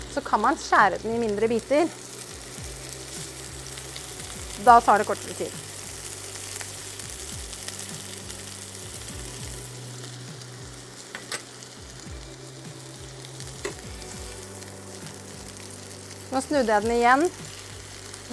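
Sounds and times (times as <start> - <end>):
chicken sizzling in a hot pan: 0.0 - 18.3
speech: 0.2 - 2.0, 4.6 - 5.7, 16.4 - 17.6.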